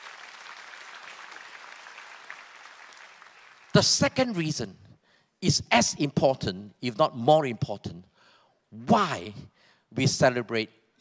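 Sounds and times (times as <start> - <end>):
audience clapping: 0.0 - 4.0
speech: 3.8 - 4.8, 5.4 - 8.1, 8.7 - 10.9.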